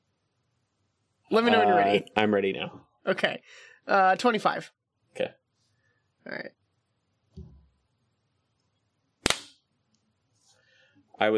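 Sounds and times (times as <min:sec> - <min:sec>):
speech: 0:01.3 - 0:05.4, 0:06.2 - 0:06.6, 0:11.2 - 0:11.3
hand clap for recording sync: 0:09.2 - 0:09.6.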